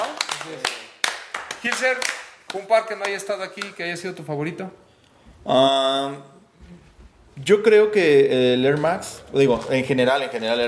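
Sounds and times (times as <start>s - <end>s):
applause: 0.0s - 3.8s
speech: 0.4s - 0.8s, 1.6s - 4.8s, 5.4s - 6.3s, 7.4s - 10.6s.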